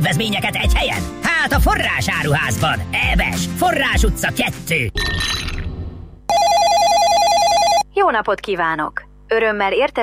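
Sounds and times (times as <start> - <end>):
speech: 0.1 - 5.4, 8.1 - 10.0
telephone ringing for an incoming call in a radio advertisement: 6.3 - 7.9.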